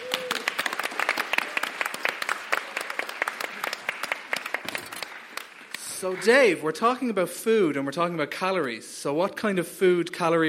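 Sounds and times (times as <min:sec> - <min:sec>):
audience applause: 0:00.0 - 0:06.6
speech: 0:06.0 - 0:10.4.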